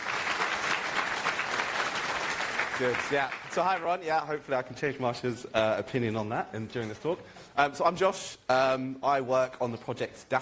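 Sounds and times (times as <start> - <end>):
conference audience applause welcoming a talk: 0.0 - 3.8
speech: 2.8 - 10.3.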